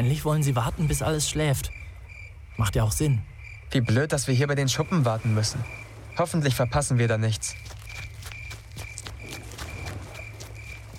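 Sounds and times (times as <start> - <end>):
speech: 0.0 - 1.8, 2.6 - 7.8
footsteps of someone running away near sheds on a foggy night: 7.4 - 10.9.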